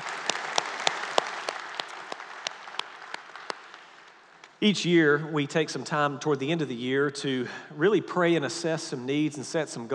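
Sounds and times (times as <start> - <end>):
church congregation applauding during a Sunday morning worship service: 0.0 - 4.6
speech: 4.6 - 9.9.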